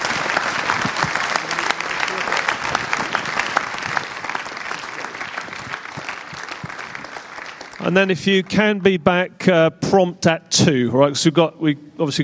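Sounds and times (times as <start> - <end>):
audience applause: 0.0 - 8.9
speech: 7.9 - 12.2.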